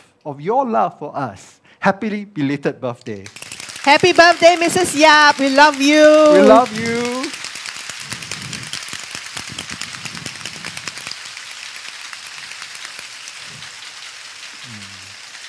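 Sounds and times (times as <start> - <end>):
speech: 0.2 - 7.3
crowd clapping: 3.2 - 15.4.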